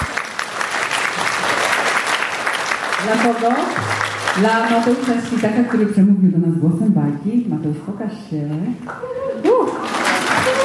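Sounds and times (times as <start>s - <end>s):
audience applause from a large crowd: 0.0s - 5.5s, 9.4s - 10.6s
speech: 3.0s - 9.8s.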